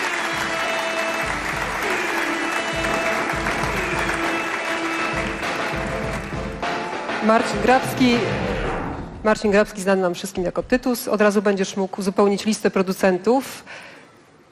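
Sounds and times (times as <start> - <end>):
audience applauding at a music awards ceremony: 0.0 - 6.7
speech: 7.2 - 8.5, 9.2 - 13.9.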